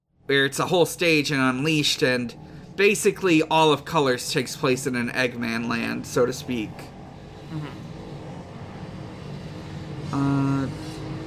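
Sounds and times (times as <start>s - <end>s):
speech: 0.3s - 6.9s, 7.5s - 7.8s, 10.1s - 10.8s
motorcycles passing by outside: 5.8s - 11.2s.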